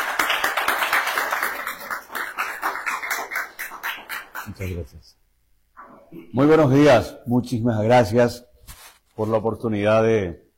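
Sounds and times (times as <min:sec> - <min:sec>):
audience applause welcoming a speaker: 0:00.0 - 0:04.6
speech: 0:04.5 - 0:05.2, 0:06.1 - 0:08.5, 0:09.2 - 0:10.4.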